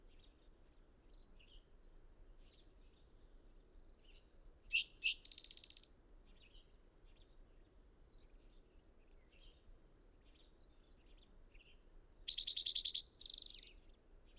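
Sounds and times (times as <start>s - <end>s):
bird singing: 4.6s - 5.9s, 12.3s - 14.3s.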